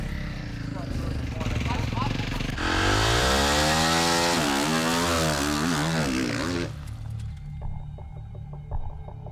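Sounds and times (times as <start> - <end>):
motocross bike engines revving riding to the starting grid: 0.0 - 6.9.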